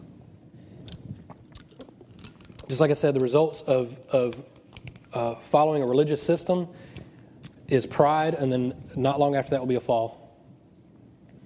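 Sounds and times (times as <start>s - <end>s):
person drinking water: 0.7s - 2.6s
swallowing: 0.8s - 2.1s
speech: 2.7s - 4.5s, 5.2s - 6.9s, 7.7s - 10.2s.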